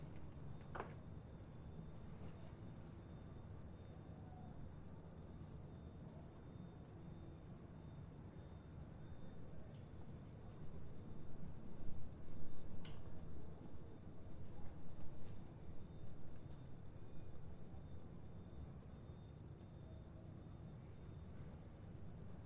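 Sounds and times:
cricket chirping: 0.0 - 22.4.

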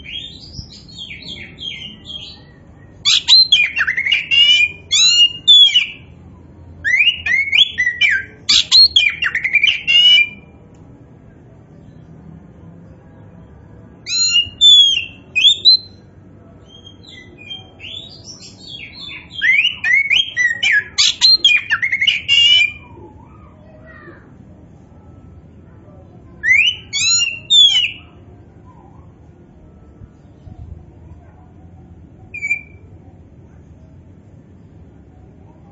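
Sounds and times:
Oriental magpie-robin singing whistles: 3.0 - 6.0, 6.9 - 10.4, 14.1 - 16.0, 16.7 - 22.8, 26.4 - 28.2, 32.3 - 32.9.

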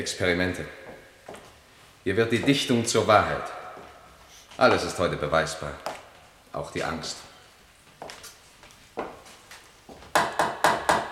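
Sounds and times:
speech: 0.0 - 0.8, 2.0 - 3.6, 4.6 - 5.9, 6.6 - 7.3
knocking: 10.0 - 11.1.

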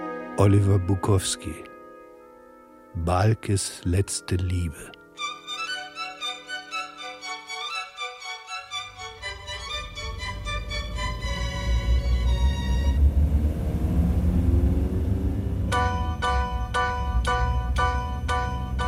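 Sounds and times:
speech: 0.4 - 1.7, 3.0 - 5.0
inside a moving car: 9.6 - 18.7.

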